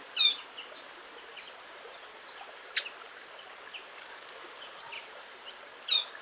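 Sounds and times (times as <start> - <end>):
Eurasian blackcap ticking calls: 0.2 - 0.4, 5.5 - 6.1.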